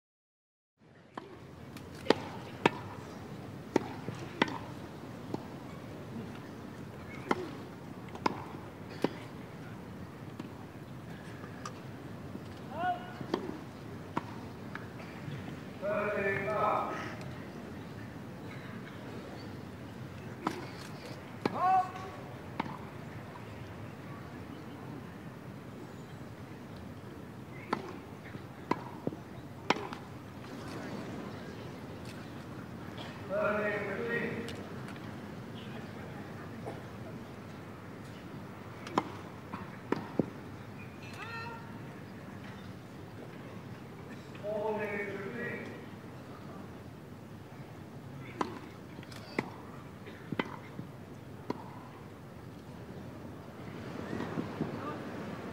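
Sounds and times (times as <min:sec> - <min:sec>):
tennis: 0:01.0 - 0:55.5.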